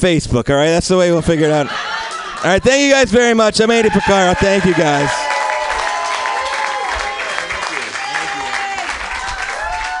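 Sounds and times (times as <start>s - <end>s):
speech: 0.0s - 5.2s
audience clapping after comedy set: 4.0s - 9.9s.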